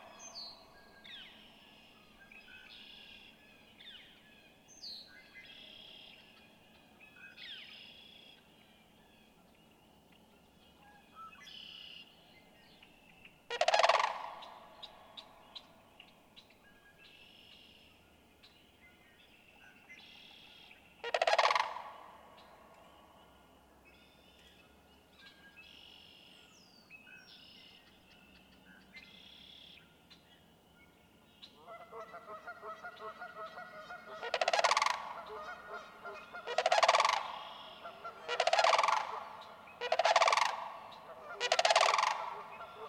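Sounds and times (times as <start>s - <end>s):
sandhill crane rattling bugle calls: 13.5s - 14.4s, 21.1s - 21.9s, 34.0s - 42.8s.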